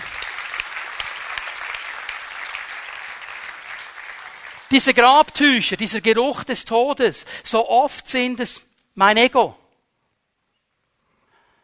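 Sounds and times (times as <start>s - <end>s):
audience applause: 0.0s - 5.0s
speech: 4.7s - 9.6s.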